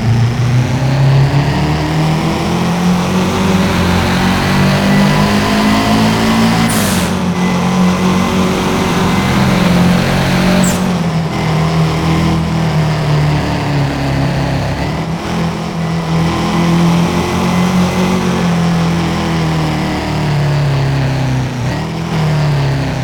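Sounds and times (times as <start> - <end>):
2015 Nissan GT-R Nismo engine: 0.0 - 23.0.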